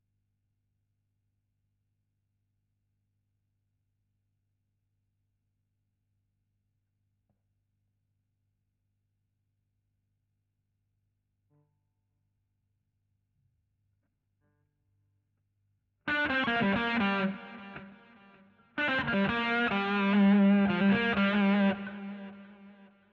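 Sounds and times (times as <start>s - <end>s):
guitar solo: 16.1s - 22.8s.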